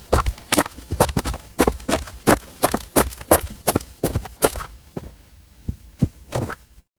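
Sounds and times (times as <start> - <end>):
footsteps on gravel: 0.0 - 6.6.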